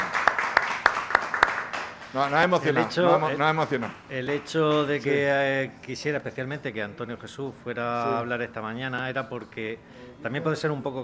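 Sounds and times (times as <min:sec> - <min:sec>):
audience applause, many hands clapping: 0:00.0 - 0:05.1
speech: 0:02.1 - 0:11.0.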